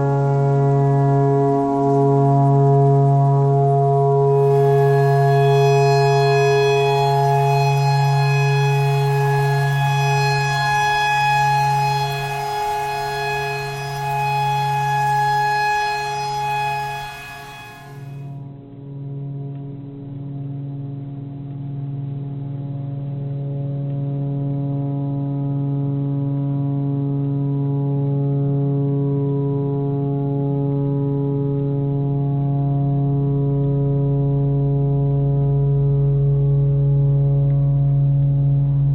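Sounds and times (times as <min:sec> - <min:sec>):
tornado siren: 0:00.0 - 0:38.9
clarinet playing pentatonic phrases: 0:04.3 - 0:18.3.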